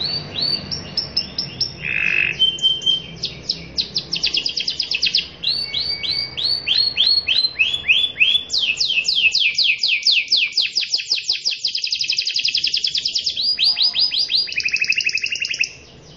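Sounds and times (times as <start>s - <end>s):
canary singing rapid high notes: 0.0s - 16.1s.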